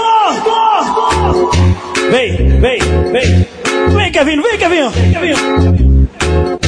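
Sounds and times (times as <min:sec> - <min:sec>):
crowd of football fans shouting: 0:00.0 - 0:02.1
speech: 0:02.1 - 0:03.5, 0:04.2 - 0:06.5.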